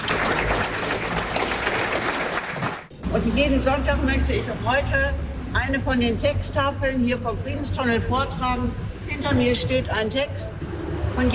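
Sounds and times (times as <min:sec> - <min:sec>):
audience applause: 0:00.0 - 0:02.9
speech: 0:03.2 - 0:10.6.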